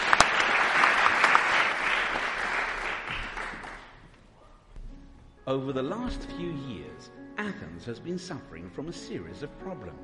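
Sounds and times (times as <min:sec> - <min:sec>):
audience applause welcoming panelists to the platform: 0:00.0 - 0:04.0
speech: 0:05.5 - 0:10.0.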